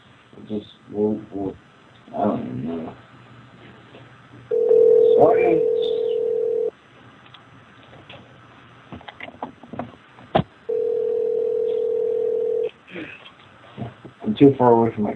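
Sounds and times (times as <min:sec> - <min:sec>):
noise: 0:00.0 - 0:10.8, 0:12.6 - 0:15.1
speech: 0:00.5 - 0:03.1, 0:05.2 - 0:06.0, 0:14.4 - 0:15.1
phone line dialing beeps: 0:04.5 - 0:06.7, 0:10.7 - 0:12.7.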